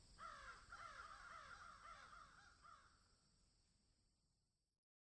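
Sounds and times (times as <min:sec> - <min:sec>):
crows cawing in summer: 0:00.2 - 0:03.0.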